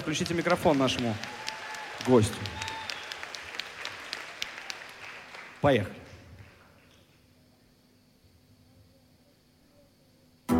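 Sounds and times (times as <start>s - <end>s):
speech: 0.0s - 2.7s, 5.6s - 6.0s
audience applause: 0.0s - 7.0s.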